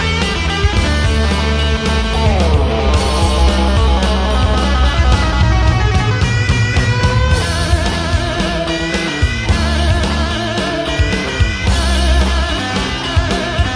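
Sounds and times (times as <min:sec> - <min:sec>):
rock guitar solo: 0:00.0 - 0:13.7.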